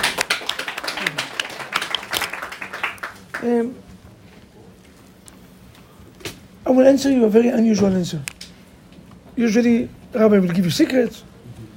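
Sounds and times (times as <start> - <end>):
hand clapping: 0.0 - 3.5
speech: 3.4 - 3.8, 6.7 - 8.3, 9.4 - 11.3.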